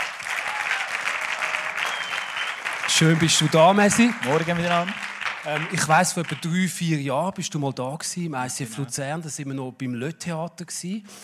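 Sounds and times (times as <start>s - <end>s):
audience applause: 0.0s - 6.9s
speech: 2.9s - 11.2s.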